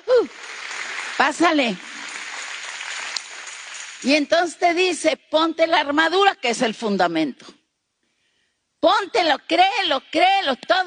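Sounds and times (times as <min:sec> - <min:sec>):
audience applause: 0:00.3 - 0:04.1
speech: 0:01.2 - 0:01.9, 0:04.0 - 0:07.6, 0:08.9 - 0:10.8.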